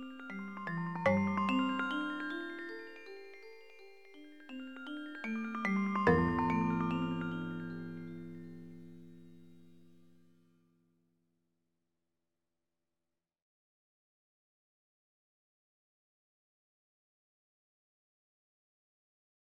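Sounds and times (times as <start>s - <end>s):
gamelan-like divisions: 0.0s - 9.9s.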